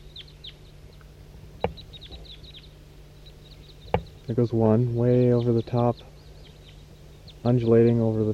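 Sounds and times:
flock of small birds chirping: 0.0s - 8.3s
low steady hum: 0.0s - 8.3s
sharp knock: 3.9s - 4.2s
speech: 4.3s - 6.1s, 7.4s - 8.3s.

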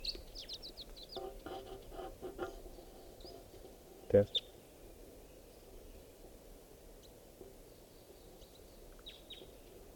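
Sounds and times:
wild bird calling: 0.0s - 2.0s, 2.6s - 6.1s, 7.0s - 9.8s
speech: 4.1s - 4.4s.

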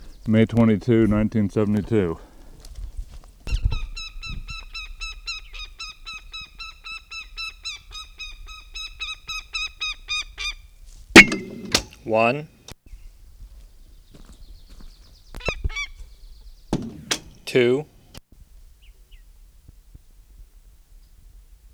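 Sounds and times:
speech: 0.2s - 2.3s, 12.2s - 12.6s, 17.5s - 17.9s
goshawk cackling calls at its nest: 3.5s - 12.2s, 15.3s - 18.2s.

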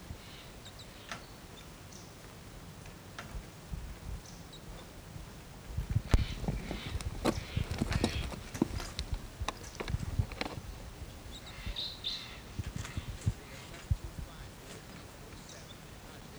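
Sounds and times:
irregular clicks: 6.1s - 10.7s
crossbills chittering chips: 6.2s - 16.3s.

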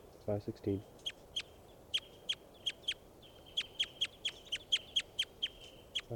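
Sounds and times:
speech: 0.3s - 1.0s
bird call: 1.9s - 6.1s.

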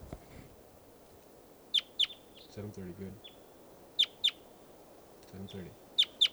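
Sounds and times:
wild bird chirping: 1.7s - 4.5s, 5.3s - 6.3s
speech: 2.6s - 3.4s, 5.3s - 5.8s.

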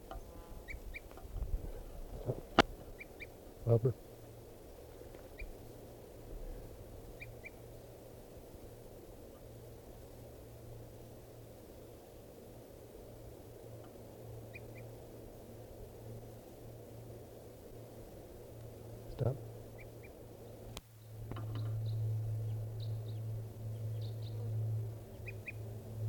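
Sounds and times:
low hum: 0.0s - 26.0s
bird calls: 2.3s - 3.8s, 5.2s - 5.7s, 7.2s - 7.6s, 19.1s - 25.6s
speech: 3.7s - 4.1s.

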